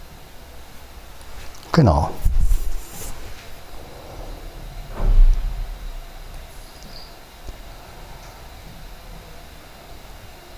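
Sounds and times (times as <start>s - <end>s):
speech: 1.8s - 2.2s
front door shutting: 2.4s - 9.0s.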